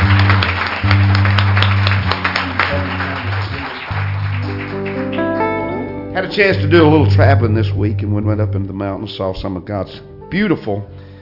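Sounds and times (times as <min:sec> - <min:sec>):
audience applause, hand clapping: 0:00.0 - 0:05.7
speech: 0:06.3 - 0:11.1.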